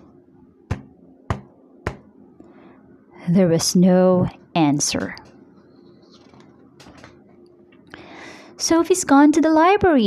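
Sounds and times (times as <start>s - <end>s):
knocking on a door: 0.7s - 2.1s
speech: 3.2s - 5.3s, 8.7s - 10.0s.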